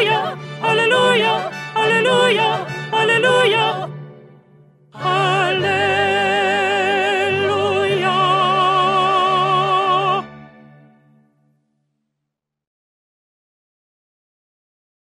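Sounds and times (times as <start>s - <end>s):
alto singing for audition practice: 0.0s - 4.0s, 5.0s - 10.5s.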